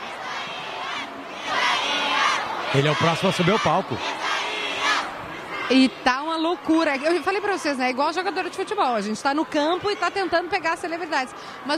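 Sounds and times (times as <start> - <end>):
event crowd shouting and cheering for the next speaker: 0.0 - 11.7
speech: 2.7 - 4.2, 5.7 - 11.7.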